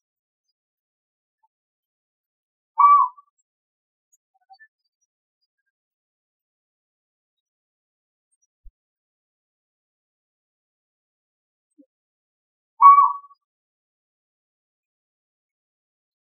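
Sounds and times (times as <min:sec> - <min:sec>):
Asian barred owlet Glaucidium cuculoides calling: 0:02.8 - 0:03.2, 0:12.8 - 0:13.2.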